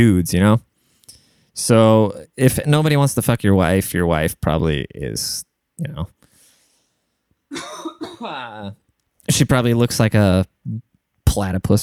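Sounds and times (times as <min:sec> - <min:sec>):
speech: 0:00.0 - 0:00.7, 0:01.6 - 0:06.2, 0:07.5 - 0:11.8
man clearing his dry throat: 0:07.5 - 0:08.7
short coughing rasp: 0:07.6 - 0:08.5.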